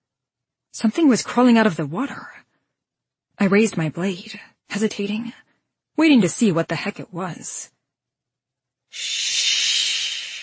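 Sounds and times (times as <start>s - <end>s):
speech: 0.7s - 2.4s, 3.4s - 5.4s, 6.0s - 7.8s, 8.9s - 9.5s
creature hissing: 8.9s - 10.4s.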